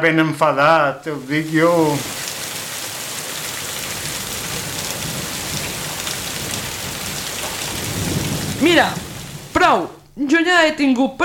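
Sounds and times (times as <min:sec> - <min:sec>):
speech: 0:00.0 - 0:02.2, 0:08.6 - 0:11.2
heavy rain: 0:01.1 - 0:09.8
low thunder rumble: 0:01.2 - 0:09.6.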